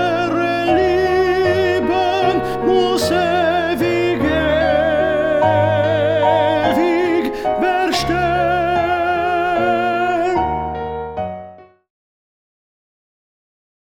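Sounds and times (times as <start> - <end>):
tenor: 0.0 - 11.7.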